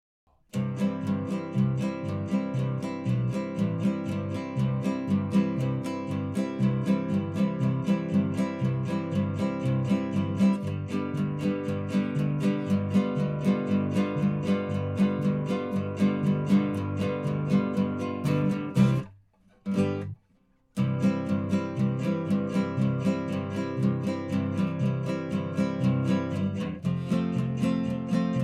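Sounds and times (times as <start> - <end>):
instrumental music: 0.3 - 28.4.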